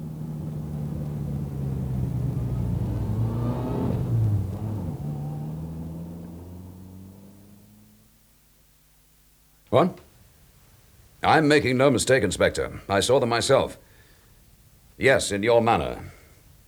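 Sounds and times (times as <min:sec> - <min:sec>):
car engine revving as the vehicle swings around: 0:00.0 - 0:08.2
speech: 0:09.7 - 0:10.0, 0:11.2 - 0:13.9, 0:15.0 - 0:16.2.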